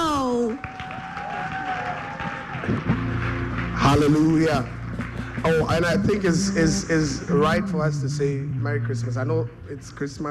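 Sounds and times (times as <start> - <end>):
crowd applause and cheering: 0.0 - 10.2
sustained musical tone: 2.7 - 10.2
speech: 3.9 - 4.8, 5.4 - 10.2.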